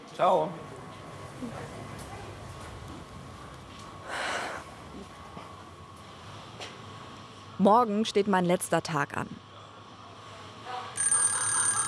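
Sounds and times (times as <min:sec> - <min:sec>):
speech: 0:00.2 - 0:00.7, 0:01.4 - 0:02.0, 0:07.6 - 0:09.5
alarm clock ringing: 0:11.0 - 0:11.8.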